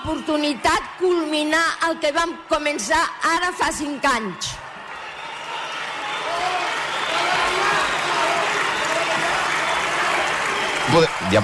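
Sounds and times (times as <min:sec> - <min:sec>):
speech: 0:00.0 - 0:04.6, 0:10.9 - 0:11.4
large crowd applauding: 0:04.1 - 0:11.4.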